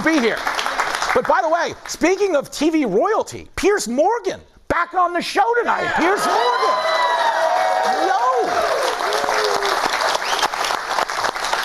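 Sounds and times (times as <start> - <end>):
speech: 0.0 - 0.6, 1.2 - 7.0
studio audience applause: 0.0 - 1.6, 6.2 - 11.6
voices whooping: 5.8 - 9.9.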